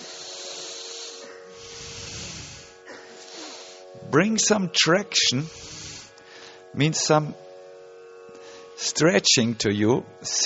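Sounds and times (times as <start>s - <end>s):
deep breathing exhale: 0.0s - 4.2s, 5.2s - 6.7s, 8.4s - 8.8s
speech: 4.1s - 5.7s, 6.8s - 7.4s, 9.0s - 10.4s.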